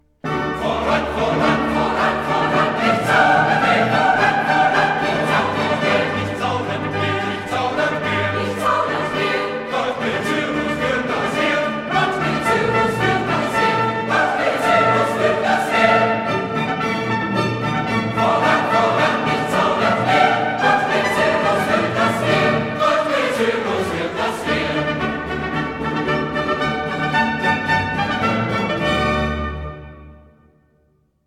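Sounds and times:
choir singing: 0.2 - 29.6.

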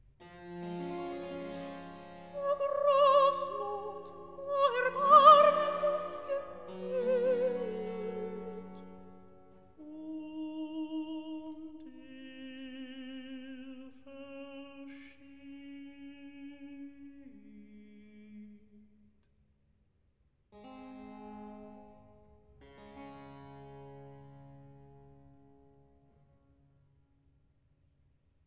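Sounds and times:
recitative singing: 2.2 - 18.7.

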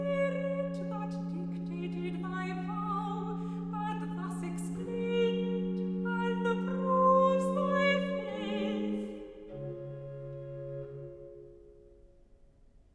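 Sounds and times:
person singing recitative: 0.0 - 9.6.

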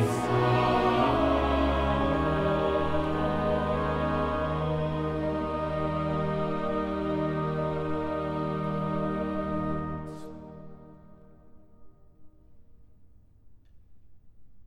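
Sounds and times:
choir singing: 0.0 - 11.0.

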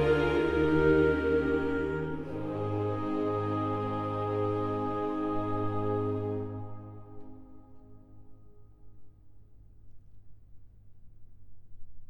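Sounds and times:
chorale: 0.0 - 9.2.

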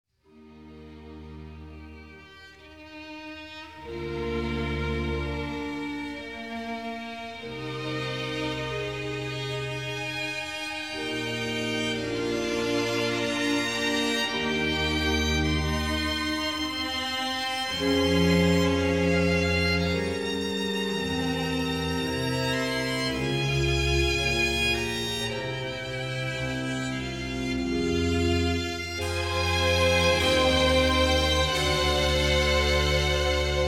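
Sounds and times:
slow organ concerto movement in G minor: 0.2 - 33.6.

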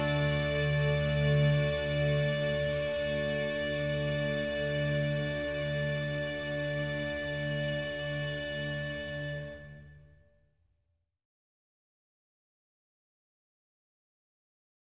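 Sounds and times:
organ concerto: 0.0 - 9.6.

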